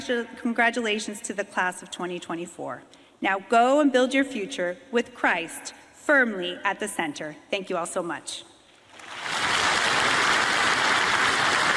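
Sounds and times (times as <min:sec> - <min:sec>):
speech: 0:00.0 - 0:08.5
rousing applause from audience: 0:09.0 - 0:11.7.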